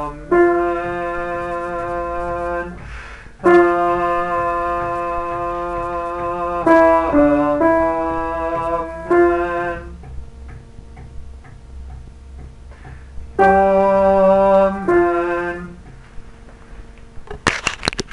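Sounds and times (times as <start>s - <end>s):
sopranos singing: 0.0s - 2.8s, 3.4s - 10.0s, 13.4s - 15.9s.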